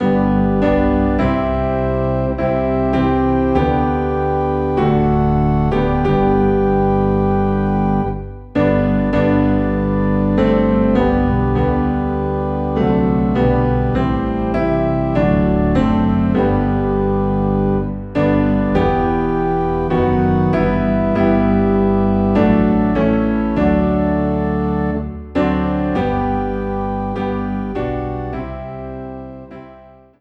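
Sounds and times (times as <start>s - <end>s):
low organ: 0.0s - 30.1s
piano: 0.0s - 30.1s.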